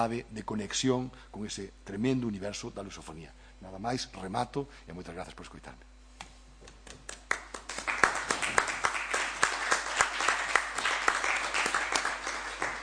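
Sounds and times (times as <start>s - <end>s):
speech: 0.0s - 5.9s
audience applause: 7.1s - 12.8s.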